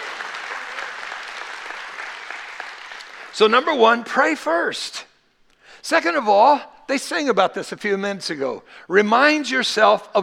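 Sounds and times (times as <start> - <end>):
crowd applauding: 0.0 - 3.6
speech: 3.4 - 5.1, 5.8 - 10.2.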